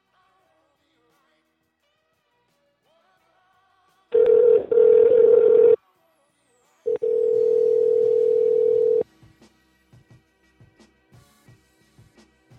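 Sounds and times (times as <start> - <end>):
telephone dial tone after a disconnected call: 4.2 - 5.8, 6.9 - 9.0.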